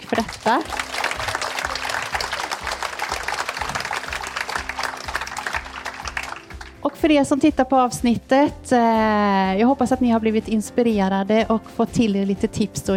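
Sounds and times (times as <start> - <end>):
audience applause: 0.0 - 6.8
speech: 0.1 - 1.0, 6.9 - 12.9.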